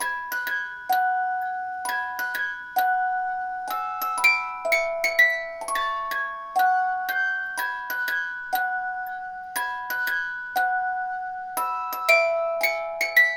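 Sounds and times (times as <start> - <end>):
music box loop: 0.0 - 13.3.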